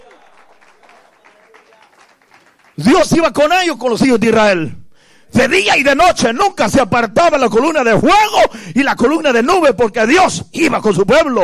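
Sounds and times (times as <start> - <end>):
audience applause: 0.0 - 3.0
speech: 2.8 - 11.4.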